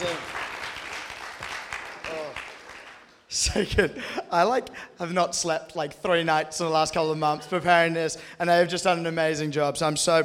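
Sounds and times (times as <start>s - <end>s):
crowd applauding: 0.0s - 3.3s
speech: 3.4s - 10.2s.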